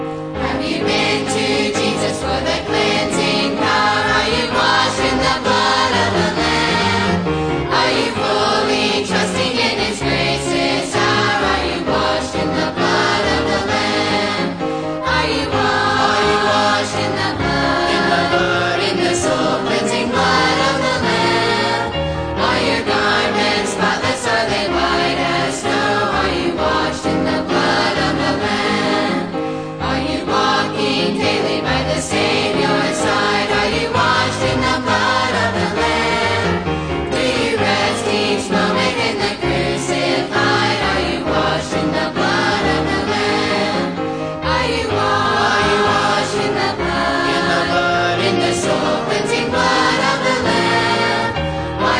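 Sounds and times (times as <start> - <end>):
teen choir: 0.2 - 51.9.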